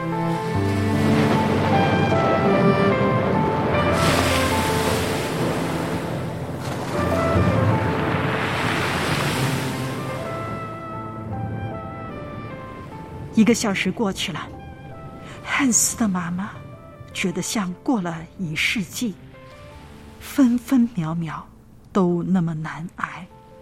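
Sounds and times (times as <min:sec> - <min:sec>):
rushing storm noise from a stormy night with rain: 0:00.0 - 0:16.0
howling wind on a stormy night: 0:00.0 - 0:17.2
speech: 0:13.4 - 0:14.6, 0:15.6 - 0:16.6, 0:17.2 - 0:19.2, 0:20.2 - 0:23.3.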